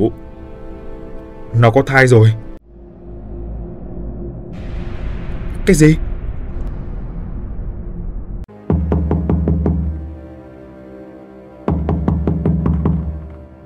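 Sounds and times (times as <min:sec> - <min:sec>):
speech: 0:00.0 - 0:00.2, 0:01.5 - 0:02.4, 0:05.6 - 0:06.0
low rumble: 0:02.6 - 0:08.5
angry father banging frantically on his daughter's bedroom door: 0:08.7 - 0:10.0, 0:11.7 - 0:13.4.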